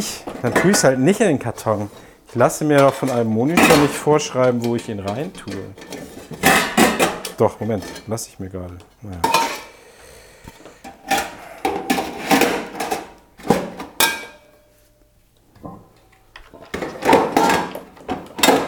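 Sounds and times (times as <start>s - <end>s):
speech: 0.0s - 6.1s, 7.4s - 9.5s
pots being put away in drawer: 2.8s - 8.1s, 10.8s - 14.5s, 15.6s - 18.6s.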